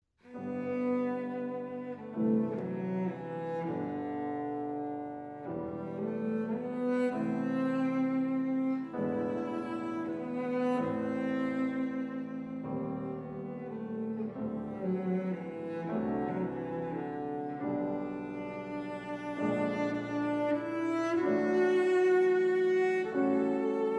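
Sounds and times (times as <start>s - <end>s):
piano trio: 0.3s - 23.9s.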